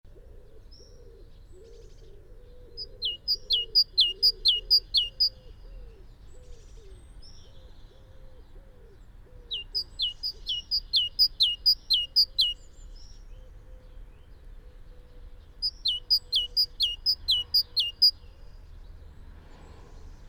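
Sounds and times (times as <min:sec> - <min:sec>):
great tit song: 0:03.0 - 0:05.3, 0:09.5 - 0:12.6, 0:15.6 - 0:18.2.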